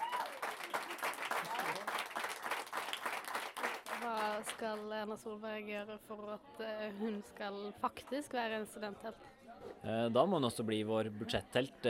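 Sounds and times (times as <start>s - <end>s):
audience applause: 0.0s - 4.6s
speech: 4.6s - 11.8s.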